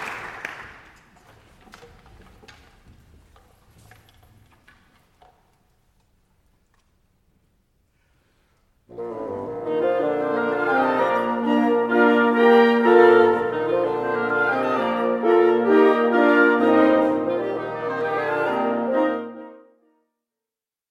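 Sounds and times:
suite for wind instruments: 0:08.9 - 0:19.8.

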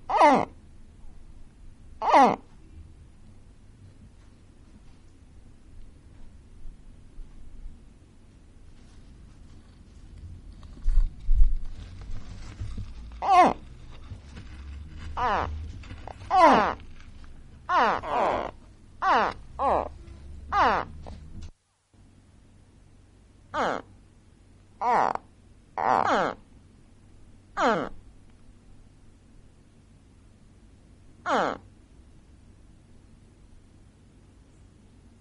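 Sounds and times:
gharial calls: 0:00.0 - 0:00.6, 0:02.0 - 0:02.5, 0:12.9 - 0:21.2, 0:23.5 - 0:24.0, 0:24.8 - 0:26.5, 0:27.6 - 0:28.0, 0:31.2 - 0:31.7
low rumbling: 0:08.9 - 0:21.5.

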